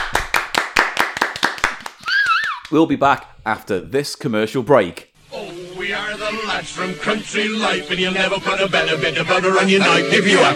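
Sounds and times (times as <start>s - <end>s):
audience applause: 0.0s - 2.6s
speech: 2.7s - 5.1s, 5.8s - 10.5s.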